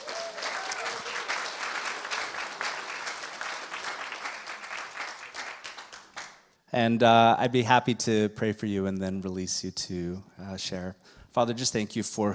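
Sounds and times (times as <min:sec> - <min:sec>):
audience applause welcoming a speaker onto the stage: 0:00.0 - 0:06.4
speech: 0:06.7 - 0:12.3.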